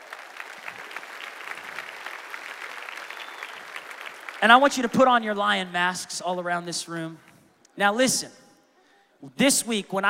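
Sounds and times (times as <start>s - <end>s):
audience applause: 0.0s - 4.7s
speech: 4.4s - 8.4s, 9.2s - 10.0s.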